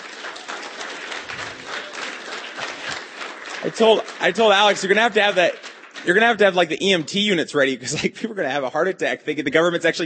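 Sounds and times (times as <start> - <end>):
applause: 0.0 - 7.8
speech: 3.6 - 10.0.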